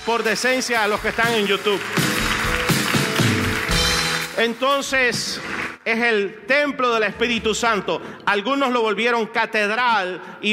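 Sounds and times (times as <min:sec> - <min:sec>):
speech: 0:00.1 - 0:02.2, 0:04.4 - 0:10.5
audience applause: 0:00.1 - 0:05.8.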